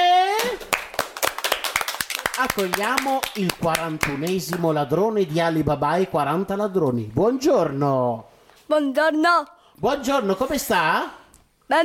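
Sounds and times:
applause: 0:00.4 - 0:04.7
speech: 0:02.4 - 0:11.8.

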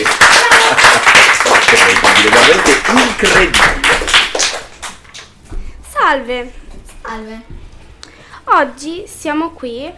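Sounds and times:
loud crowd applause: 0:00.0 - 0:05.0
speech: 0:06.1 - 0:07.6, 0:08.5 - 0:09.9.

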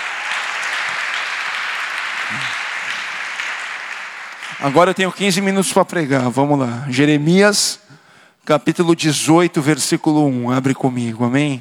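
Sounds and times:
audience applause in a large room: 0:00.0 - 0:05.7
speech: 0:04.6 - 0:11.5.

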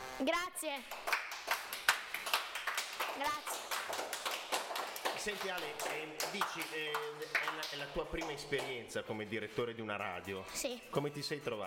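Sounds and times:
speech: 0:00.2 - 0:01.9, 0:03.2 - 0:04.1, 0:05.2 - 0:11.6
applause: 0:00.8 - 0:08.8.

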